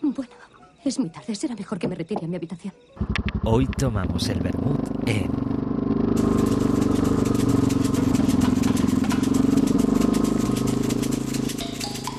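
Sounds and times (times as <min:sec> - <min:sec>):
speech: 0:00.2 - 0:05.5, 0:06.2 - 0:06.6
Volkswagen Beetle convertible engine running: 0:03.0 - 0:12.1.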